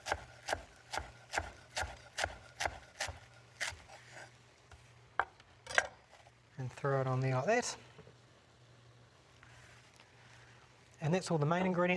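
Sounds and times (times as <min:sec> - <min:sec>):
knife chopping fresh mint and parsley on a board: 0:00.0 - 0:04.0
speech: 0:06.8 - 0:07.9, 0:11.1 - 0:11.9.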